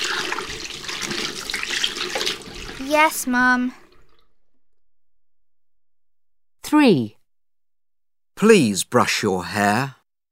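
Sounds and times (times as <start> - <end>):
water running from a tap while hands are washed: 0.0 - 4.8
speech: 2.9 - 3.8, 6.7 - 7.2, 8.4 - 10.0.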